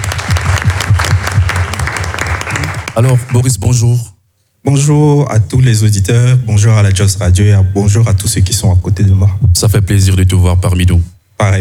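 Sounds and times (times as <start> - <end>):
radio show audience applause welcoming a guest: 0.0 - 3.6
speech: 3.0 - 11.5.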